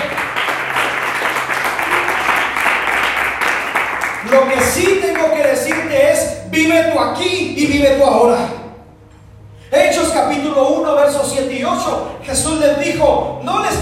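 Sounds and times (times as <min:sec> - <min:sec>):
applause: 0:00.0 - 0:06.0
speech: 0:04.3 - 0:08.6, 0:09.7 - 0:13.7.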